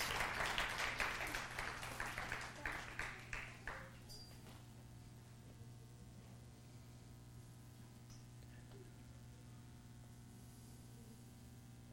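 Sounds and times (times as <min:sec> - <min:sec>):
crowd applauding: 0:00.0 - 0:04.0.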